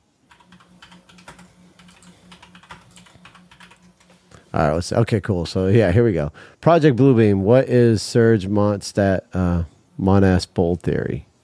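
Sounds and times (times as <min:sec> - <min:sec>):
typing a web search on a computer keyboard: 0:00.3 - 0:04.3
speech: 0:04.5 - 0:11.3.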